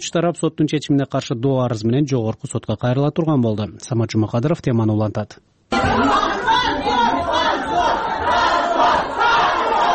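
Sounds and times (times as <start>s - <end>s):
speech: 0.0s - 6.2s
people in a courtroom shouting and clamoring at a verdict: 5.7s - 9.9s.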